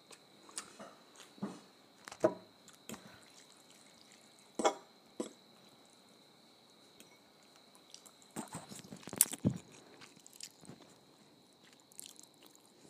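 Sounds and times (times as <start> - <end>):
ramen noodles being slurped and chewed: 2.7 - 4.6, 7.6 - 11.0, 11.6 - 12.8.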